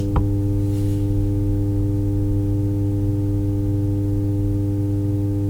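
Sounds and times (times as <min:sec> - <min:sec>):
thumper jack thump from amplifier: 0:00.0 - 0:05.4.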